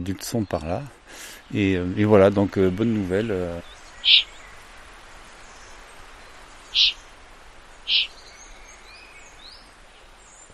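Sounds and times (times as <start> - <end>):
speech: 0.0 - 4.3, 6.8 - 7.0, 7.9 - 8.2
steady hiss: 0.0 - 10.5
young eagle-owls calling and begging for food at nightfall: 4.0 - 4.4, 6.6 - 7.1, 7.8 - 8.2.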